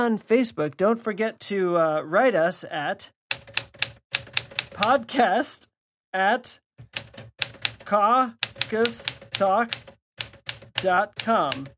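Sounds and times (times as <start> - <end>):
speech: 0.0 - 3.2, 4.8 - 7.0, 7.9 - 9.8, 10.8 - 11.7
old typewriter clacking: 3.3 - 5.0, 6.8 - 11.7.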